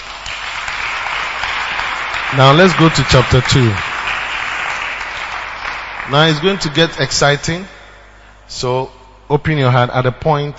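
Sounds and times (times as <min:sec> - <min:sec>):
audience clapping: 0:00.0 - 0:07.7
speech: 0:02.3 - 0:03.9, 0:06.1 - 0:07.7, 0:08.5 - 0:10.5.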